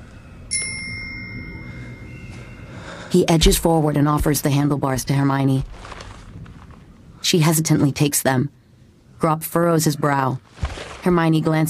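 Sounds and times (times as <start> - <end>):
bicycle bell ringing: 0.5 - 3.0
speech: 3.1 - 6.0, 7.3 - 8.6, 9.2 - 11.6.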